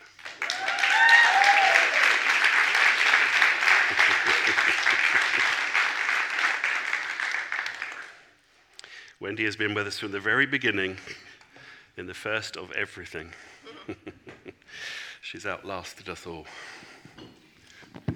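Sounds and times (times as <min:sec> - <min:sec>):
crowd applauding a speaker: 0:00.0 - 0:08.3
cheers and voices: 0:00.4 - 0:02.2
laughter: 0:03.3 - 0:06.0
speech: 0:09.4 - 0:11.3, 0:12.0 - 0:14.2, 0:15.3 - 0:16.8.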